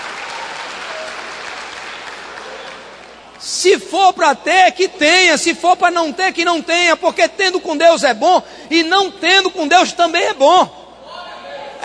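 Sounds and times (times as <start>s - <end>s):
audience applause: 0.0s - 3.3s
speech: 3.6s - 10.8s.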